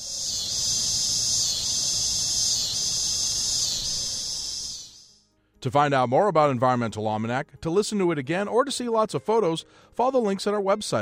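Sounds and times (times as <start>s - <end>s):
cicadas singing in trees: 0.0s - 5.2s
speech: 5.6s - 11.0s.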